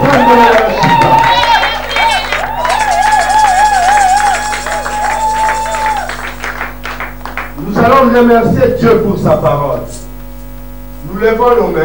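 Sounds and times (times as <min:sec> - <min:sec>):
audience applause and cheering: 0:00.0 - 0:07.6
speech: 0:00.2 - 0:00.8, 0:08.1 - 0:10.0, 0:11.2 - 0:11.8.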